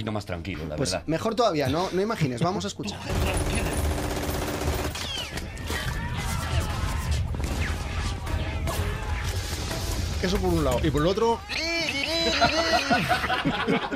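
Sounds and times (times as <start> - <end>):
speech: 0.0 - 3.8, 10.2 - 11.6, 12.2 - 13.9
rapid machine-gun bursts in battle sound effects: 3.1 - 5.3
sharp explosive cracks of grenades: 5.6 - 11.2
laughter: 11.6 - 13.9.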